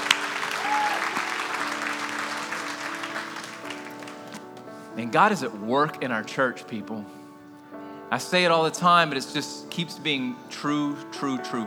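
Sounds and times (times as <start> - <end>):
audience clapping: 0.0 - 4.8
speech: 5.0 - 7.2, 8.1 - 11.6.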